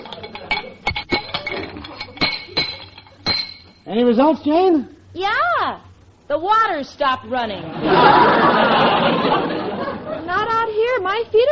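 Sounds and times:
wrench tightening metal pipes: 0.0s - 3.8s
speech: 3.9s - 9.5s, 10.3s - 11.5s
laughter: 7.6s - 10.5s.

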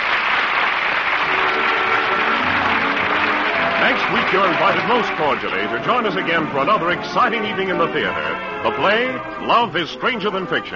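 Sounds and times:
large theater audience applause: 0.0s - 8.1s
speech: 4.3s - 10.7s.

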